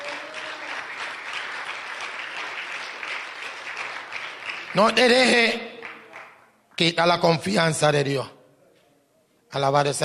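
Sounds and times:
audience applause: 0:00.0 - 0:06.3
speech: 0:04.8 - 0:05.7, 0:06.8 - 0:08.4, 0:09.5 - 0:10.0.

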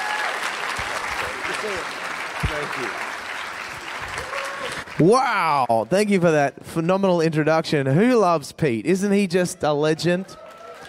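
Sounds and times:
audience applause welcoming a speaker onto the stage: 0:00.0 - 0:06.2, 0:10.1 - 0:10.8
speech: 0:01.6 - 0:03.0, 0:04.2 - 0:10.4.

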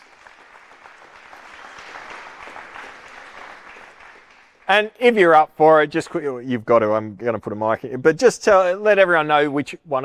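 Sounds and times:
crowd clapping: 0:00.0 - 0:05.1
speech: 0:04.7 - 0:10.0.

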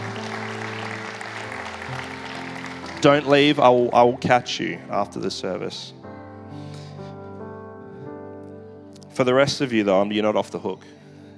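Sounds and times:
congregation applauding in church: 0:00.0 - 0:05.1
speech: 0:03.0 - 0:06.0, 0:09.2 - 0:11.0.

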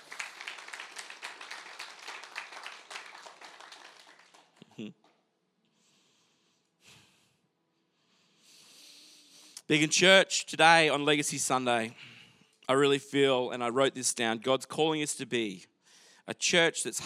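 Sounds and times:
audience applause: 0:00.0 - 0:04.8
speech: 0:04.8 - 0:05.1, 0:09.7 - 0:12.1, 0:12.7 - 0:15.7, 0:16.3 - 0:17.0.

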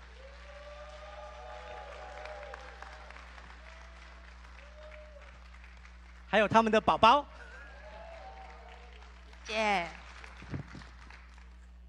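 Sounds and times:
audience clapping in welcome: 0:00.0 - 0:11.8
speech: 0:06.4 - 0:07.5, 0:09.5 - 0:10.0.

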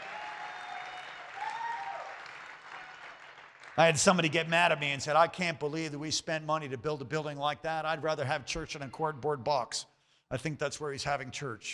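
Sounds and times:
audience hand clapping: 0:00.0 - 0:04.4
speech: 0:03.8 - 0:11.7.

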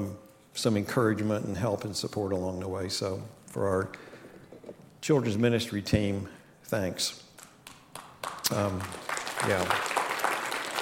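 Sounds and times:
speech: 0:00.6 - 0:04.1, 0:04.7 - 0:07.3, 0:08.5 - 0:10.0
audience clapping: 0:07.4 - 0:10.8.

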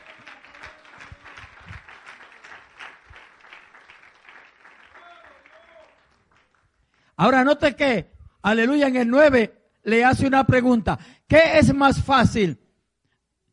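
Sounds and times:
audience applause: 0:00.0 - 0:06.6
speech: 0:07.2 - 0:12.6.

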